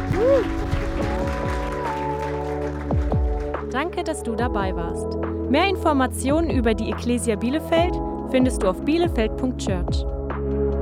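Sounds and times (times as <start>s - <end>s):
scattered cheers and whoops: 0.0s - 2.7s
crowd clapping: 0.0s - 4.1s
speech: 0.3s - 0.6s, 3.8s - 10.1s.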